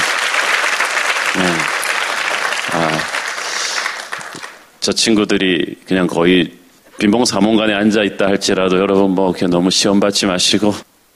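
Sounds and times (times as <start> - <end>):
applause: 0.0 - 4.7
speech: 4.9 - 10.9.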